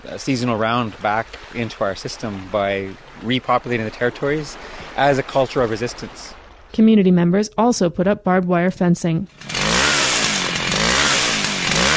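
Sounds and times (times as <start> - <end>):
speech: 0.0 - 9.6
chainsaw run by an elder: 9.3 - 11.9.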